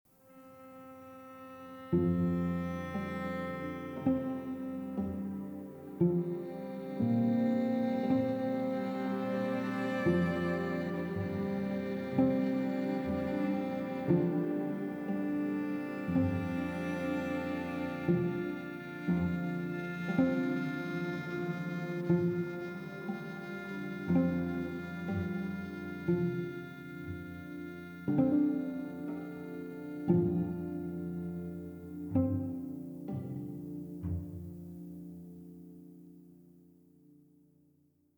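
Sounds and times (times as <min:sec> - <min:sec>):
soft music: 0:00.1 - 0:37.6.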